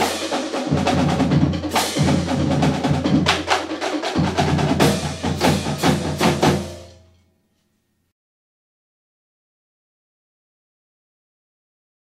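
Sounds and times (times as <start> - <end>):
marching band drumline: 0.0 - 6.9.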